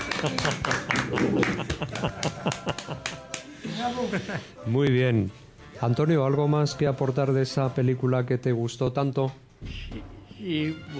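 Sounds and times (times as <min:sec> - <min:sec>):
small group clapping: 0:00.0 - 0:03.6
laughter: 0:00.0 - 0:04.6
speech: 0:00.2 - 0:10.9.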